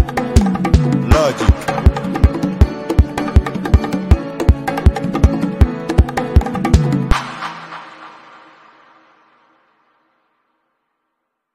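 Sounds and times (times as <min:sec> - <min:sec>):
professional beat with violin: 0:00.0 - 0:06.8.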